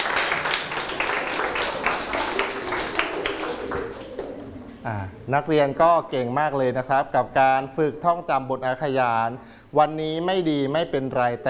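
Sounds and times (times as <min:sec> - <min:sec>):
group applause for students: 0:00.0 - 0:04.8
speech: 0:04.9 - 0:11.4.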